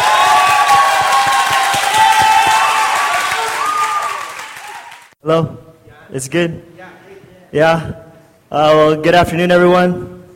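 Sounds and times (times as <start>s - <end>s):
audience shouts and whoops: 0.0s - 5.1s
audience applause welcoming a guest speaker at a church gathering: 0.0s - 5.2s
speech: 5.2s - 6.7s, 7.5s - 10.1s.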